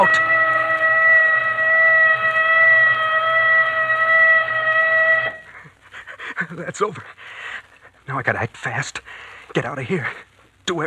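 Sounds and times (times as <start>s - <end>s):
alarm whistle blowing: 0.0s - 5.6s
speech: 6.8s - 7.5s, 8.1s - 10.8s.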